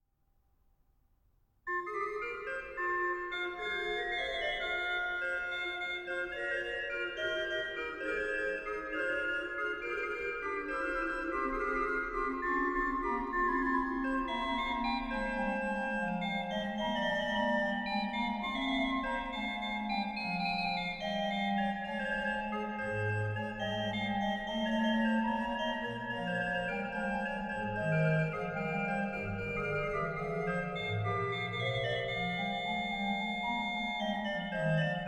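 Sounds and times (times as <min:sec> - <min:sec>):
organ duo: 0:01.7 - 0:35.0.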